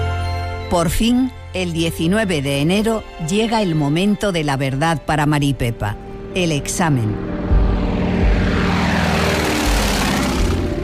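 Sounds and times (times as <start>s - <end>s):
speech: 0.7s - 7.5s
propeller airplane in flight droning: 6.0s - 10.8s.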